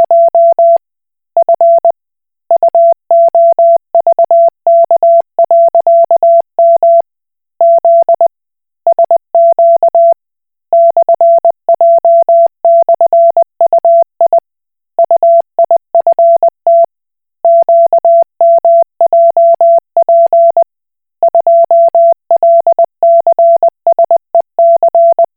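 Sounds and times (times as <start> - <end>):
Koch Morse code beeps: 0.0 - 0.8, 1.4 - 1.9, 2.6 - 7.0, 7.6 - 8.3, 8.9 - 10.2, 10.8 - 14.4, 15.2 - 16.9, 17.5 - 20.6, 21.3 - 25.3.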